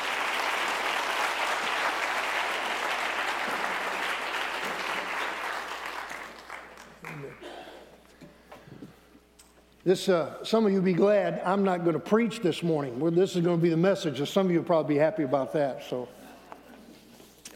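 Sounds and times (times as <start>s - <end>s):
church audience clapping to welcome a visiting couple: 0.0s - 7.4s
speech: 9.8s - 16.2s.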